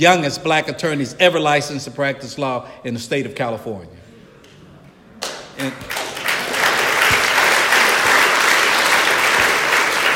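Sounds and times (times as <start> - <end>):
speech: 0.0 - 4.0, 5.6 - 6.0
audience clapping: 5.2 - 10.1.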